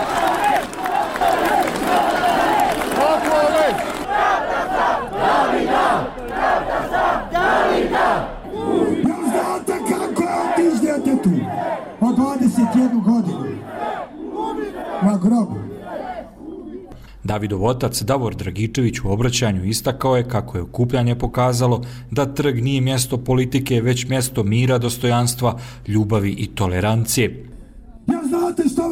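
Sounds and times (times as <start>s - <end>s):
protest crowd chanting: 0.0s - 17.0s
speech: 17.4s - 28.8s.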